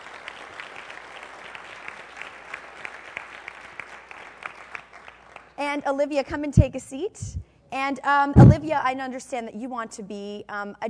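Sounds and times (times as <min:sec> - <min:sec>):
audience applause: 0:00.0 - 0:05.6
speech: 0:05.6 - 0:10.8.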